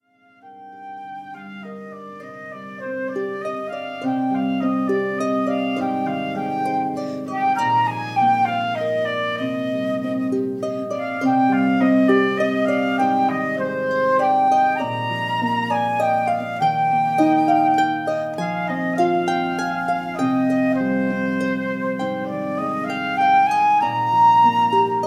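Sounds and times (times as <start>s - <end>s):
flute: 0.0s - 25.0s
harp: 0.0s - 25.0s.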